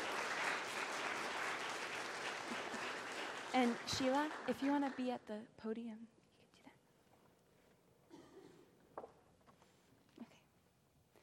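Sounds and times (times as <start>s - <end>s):
audience applause: 0.0s - 5.1s
speech: 3.6s - 6.2s.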